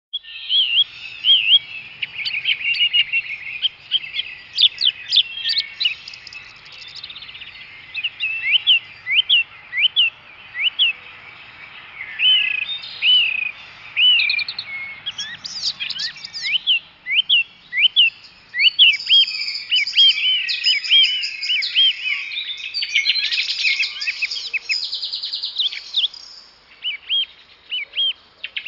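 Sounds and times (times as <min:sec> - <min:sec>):
morning birds singing: 0:00.1 - 0:28.6.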